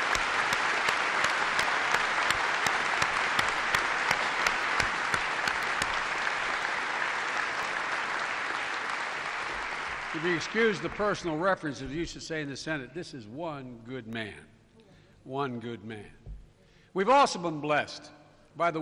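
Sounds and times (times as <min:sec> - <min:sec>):
audience applause: 0:00.0 - 0:11.6
speech: 0:10.2 - 0:14.5, 0:15.2 - 0:16.2, 0:17.0 - 0:18.8.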